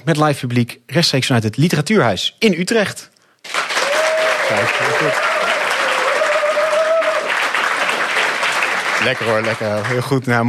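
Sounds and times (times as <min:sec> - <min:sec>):
speech: 0:00.0 - 0:03.6, 0:04.5 - 0:05.5, 0:09.0 - 0:10.4
live audience applause: 0:03.4 - 0:10.4.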